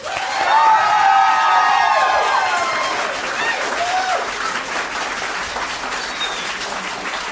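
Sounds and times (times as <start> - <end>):
whoops: 0.0 - 4.4
crowd applauding: 0.0 - 7.3
shrill whistles: 6.0 - 6.7.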